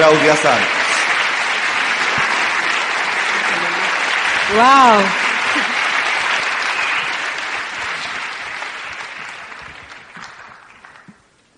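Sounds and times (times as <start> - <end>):
speech: 0.0 - 0.8, 4.5 - 5.7
audience applause: 0.0 - 11.3.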